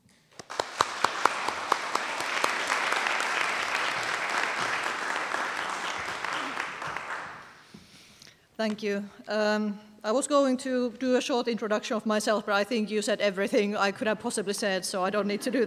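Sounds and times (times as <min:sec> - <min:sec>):
audience applause welcoming an author: 0:00.4 - 0:07.6
speech: 0:08.6 - 0:15.6.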